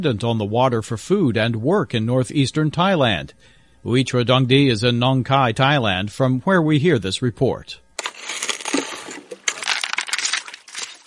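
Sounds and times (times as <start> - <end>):
speech: 0.0 - 7.8
panning for flecks of gold on the banks of the Mekong River: 8.0 - 11.0.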